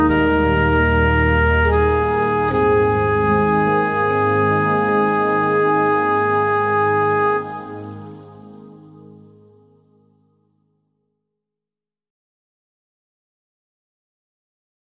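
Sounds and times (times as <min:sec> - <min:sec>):
clarinets playing: 0:00.0 - 0:10.0.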